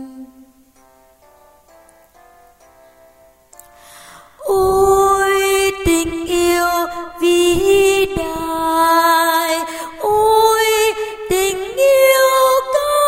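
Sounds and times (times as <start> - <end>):
tenor singing: 4.4 - 13.0.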